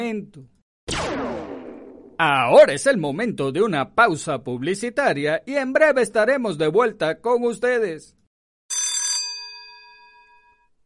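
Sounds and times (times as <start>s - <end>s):
speech: 0.0s - 0.6s, 2.2s - 8.2s
doorbell ringing: 8.7s - 10.8s.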